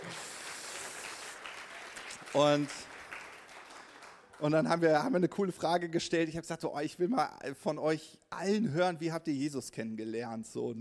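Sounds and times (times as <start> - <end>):
crowd applauding: 0.0 - 5.1
speech: 2.3 - 2.9, 4.4 - 10.7.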